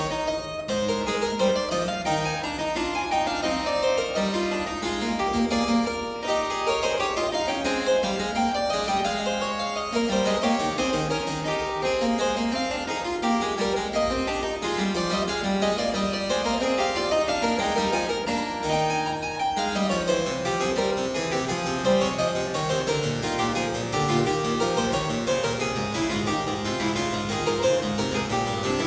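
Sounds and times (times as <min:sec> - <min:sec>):
three-part keyboard invention in A major: 0:00.1 - 0:28.8.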